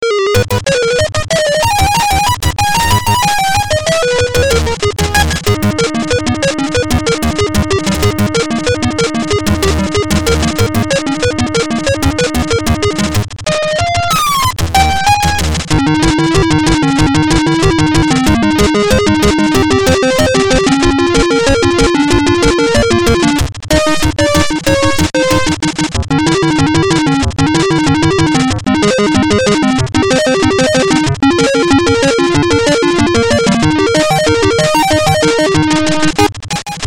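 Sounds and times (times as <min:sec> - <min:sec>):
synth: 0:00.4 - 0:36.8.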